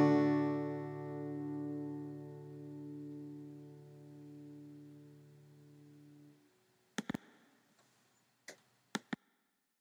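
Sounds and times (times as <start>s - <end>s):
vocals: 0.0s - 1.9s.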